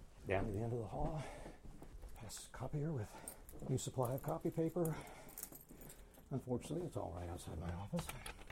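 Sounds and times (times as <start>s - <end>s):
speech: 0.3s - 1.4s, 2.3s - 5.2s, 6.3s - 8.3s
keys jangling to unlock door: 3.1s - 6.3s.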